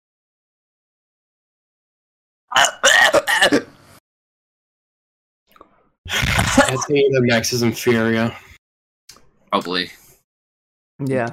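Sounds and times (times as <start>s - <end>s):
speech: 2.5s - 3.7s, 6.1s - 8.5s, 9.5s - 10.0s, 11.0s - 11.3s
person gagging on a pen pushed down throat: 6.1s - 6.9s.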